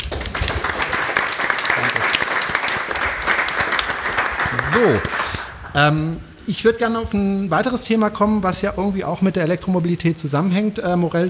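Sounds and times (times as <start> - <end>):
audience applause: 0.0 - 5.8
speech: 4.8 - 5.2, 5.8 - 11.2.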